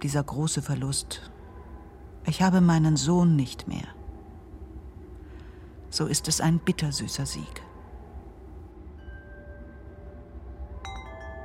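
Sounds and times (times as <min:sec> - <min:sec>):
speech: 0:00.0 - 0:01.4, 0:02.2 - 0:04.0, 0:05.9 - 0:07.7
low rumble of wind: 0:00.0 - 0:11.4
soft sustained tone: 0:00.0 - 0:11.4
metal wind chimes clinking in wind: 0:09.0 - 0:11.4.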